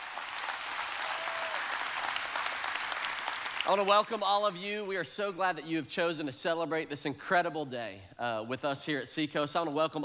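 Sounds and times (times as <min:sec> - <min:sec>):
congregation applauding at an Easter church service: 0:00.0 - 0:04.2
speech: 0:03.7 - 0:10.0.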